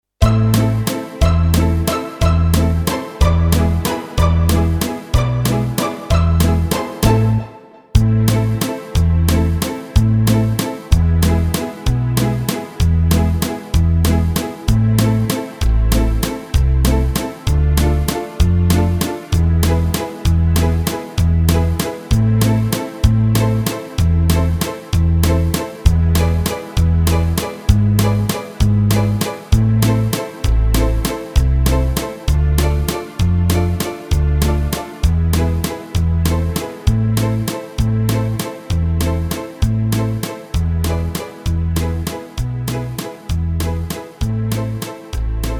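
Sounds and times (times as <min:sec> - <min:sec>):
Bulgarian balalaika: 0:00.2 - 0:45.5.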